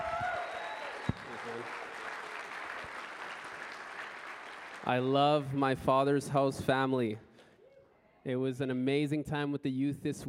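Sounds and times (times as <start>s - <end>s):
audience round of applause: 0.0s - 5.1s
speech: 4.8s - 7.3s, 8.2s - 10.2s.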